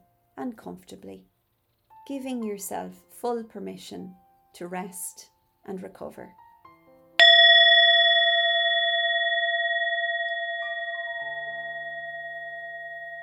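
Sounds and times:
speech: 0.4 - 1.3, 2.1 - 6.4
singing bowl struck and ringing: 7.2 - 13.2.

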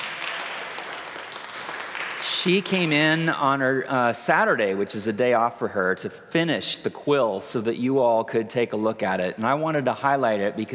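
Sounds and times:
audience clapping hands: 0.0 - 3.4
speech: 2.3 - 10.7.

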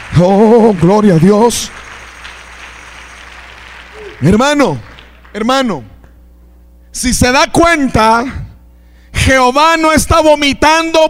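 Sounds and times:
crowd applauding: 0.0 - 5.9
speech: 0.2 - 1.8, 4.2 - 5.9, 6.9 - 8.4, 9.2 - 11.0.

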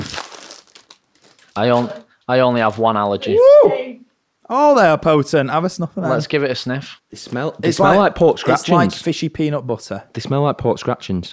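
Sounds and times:
plastic packet of nuts being rustled: 0.0 - 2.1
speech: 1.6 - 11.3.

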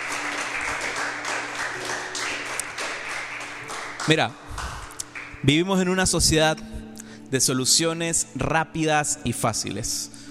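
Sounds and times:
audience applause: 0.0 - 5.5
speech: 4.1 - 4.7, 5.4 - 10.2.

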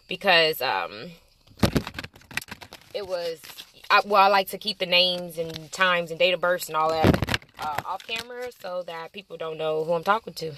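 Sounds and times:
speech: 0.1 - 1.2, 3.0 - 10.5
deck of cards shuffling: 1.6 - 4.2, 5.0 - 6.0, 6.7 - 8.9.

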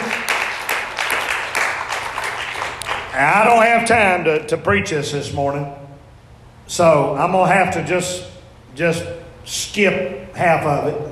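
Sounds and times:
crowd clapping hands: 0.0 - 3.5
speech: 3.2 - 5.8, 6.7 - 11.1.

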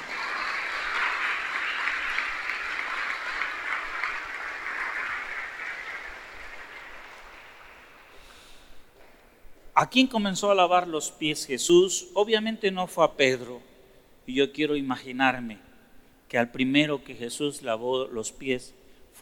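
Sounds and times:
loud audience applause: 0.0 - 8.2
speech: 9.8 - 13.7, 14.3 - 15.6, 16.3 - 19.1.

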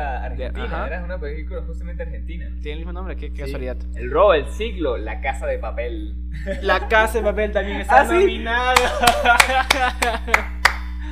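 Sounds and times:
laughter: 0.0 - 1.0, 6.3 - 7.1, 7.7 - 11.0
speech: 0.2 - 10.6
applause: 8.8 - 11.0.

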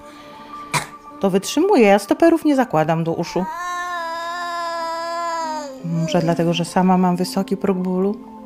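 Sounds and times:
speech: 1.2 - 3.8, 6.1 - 8.4
child crying during exercises: 3.4 - 6.5.

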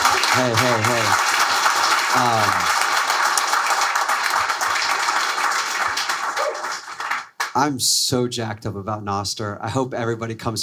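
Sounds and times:
audience applause: 0.0 - 7.6
speech: 0.4 - 1.2, 2.1 - 2.7, 7.6 - 10.6.

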